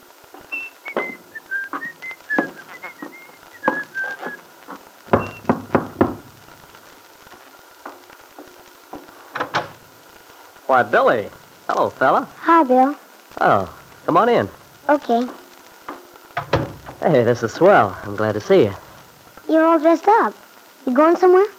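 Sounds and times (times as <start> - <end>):
footsteps thudding up wooden steps: 0.3 - 9.8, 15.2 - 17.0
person whistling a cheerful lilting tune: 0.5 - 4.4
speech: 10.7 - 15.4, 17.0 - 18.8, 19.5 - 21.5.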